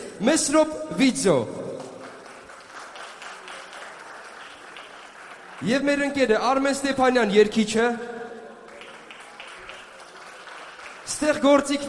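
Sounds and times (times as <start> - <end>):
speech: 0.2 - 1.6, 5.6 - 8.2, 11.2 - 11.8
audience applause at a live stage event: 1.8 - 6.2, 8.6 - 11.8.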